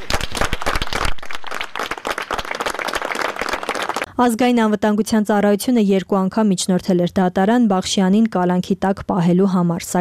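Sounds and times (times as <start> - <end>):
judges and lawyers clapping outside Vardashen penitentiary: 0.0 - 4.1
speech: 4.2 - 9.9.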